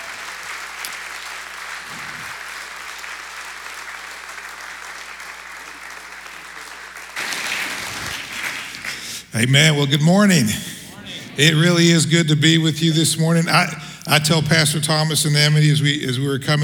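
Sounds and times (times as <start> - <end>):
church congregation applauding to welcome a pastor: 0.0 - 16.6
laughter: 7.2 - 16.6
speech: 9.4 - 10.7, 11.4 - 16.6.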